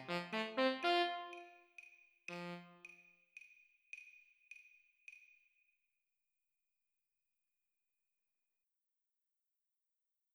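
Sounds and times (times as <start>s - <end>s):
tenor saxophone play-along at 40 BPM: 0.0s - 1.6s, 2.3s - 2.9s.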